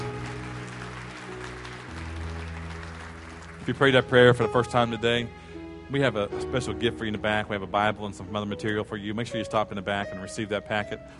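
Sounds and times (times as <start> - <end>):
church congregation clapping: 0.0 - 4.8
speech: 3.7 - 11.1.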